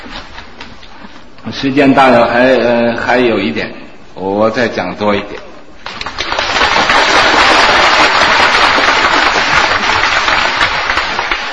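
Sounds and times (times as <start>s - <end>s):
speech: 1.4s - 5.5s
audience applause: 5.8s - 11.5s.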